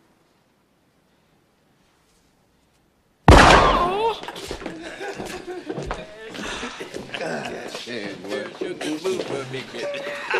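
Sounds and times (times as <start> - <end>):
gunshot in a film scene: 3.3 - 4.2
laughter: 3.6 - 10.3
people talking: 7.0 - 10.3.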